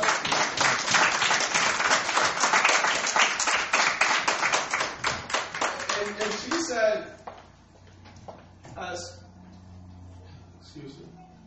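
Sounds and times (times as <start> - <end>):
audience applause: 0.0 - 6.7.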